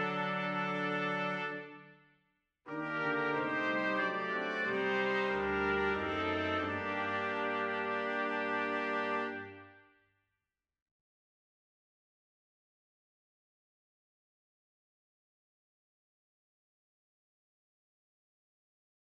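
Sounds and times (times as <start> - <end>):
brass quintet: 0.0 - 2.0, 2.7 - 10.0.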